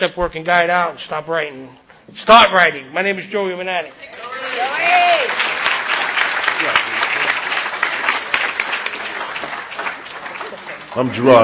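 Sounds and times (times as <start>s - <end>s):
speech: 0.0s - 5.4s, 11.0s - 11.4s
audience applause: 4.1s - 11.4s.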